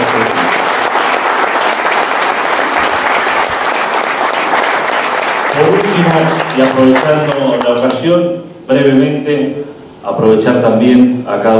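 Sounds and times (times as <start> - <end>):
audience applause: 0.0 - 8.0
speech: 6.0 - 11.5.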